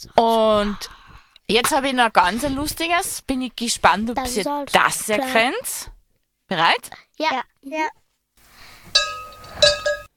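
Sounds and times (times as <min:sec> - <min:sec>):
speech: 0:00.0 - 0:08.0
bell ringing: 0:09.0 - 0:10.1.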